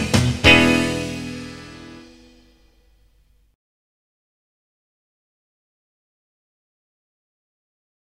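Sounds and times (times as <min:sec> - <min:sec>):
blues guitar in E: 0:00.0 - 0:02.5.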